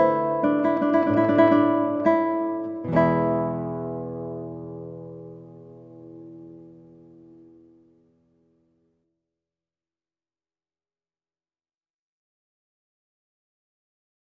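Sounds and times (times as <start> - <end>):
classical adagio played on guitar: 0.0 - 8.9.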